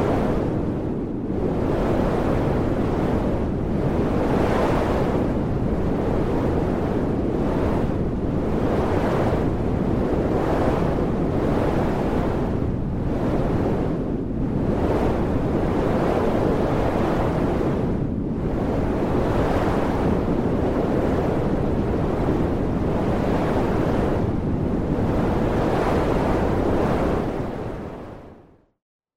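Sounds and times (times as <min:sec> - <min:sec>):
hurricane wind: 0:00.0 - 0:28.5.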